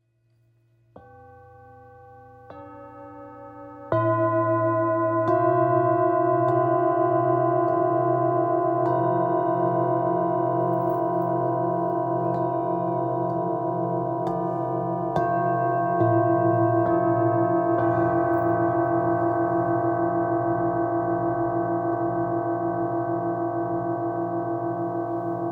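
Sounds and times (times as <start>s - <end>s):
Tibetan singing bowls: 1.0s - 25.4s.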